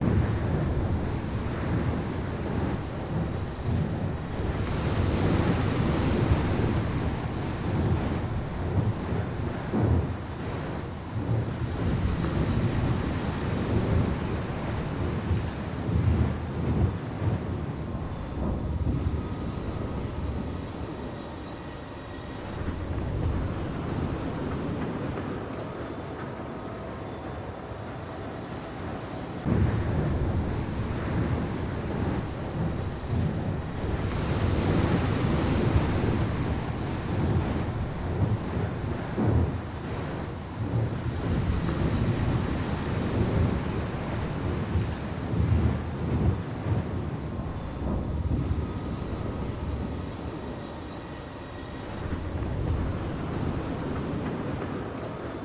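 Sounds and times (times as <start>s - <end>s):
ship environment background: 0.0s - 55.4s.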